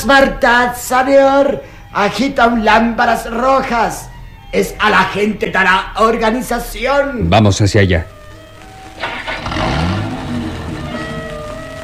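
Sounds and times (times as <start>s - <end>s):
speech: 0.0s - 8.1s
car engine turning over and revving as the car pulls away: 8.1s - 11.8s.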